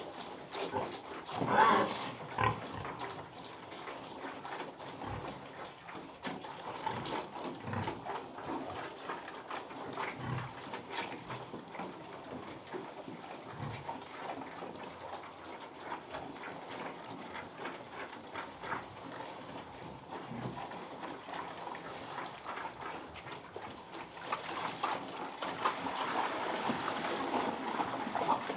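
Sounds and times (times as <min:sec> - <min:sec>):
pig chewing and snuffling while feeding: 0:00.0 - 0:28.5.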